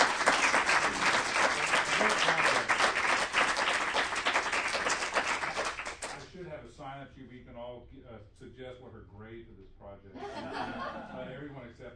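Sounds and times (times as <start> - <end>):
audience applause: 0.0 - 6.2
speech: 8.9 - 11.9
laughter: 10.2 - 11.6.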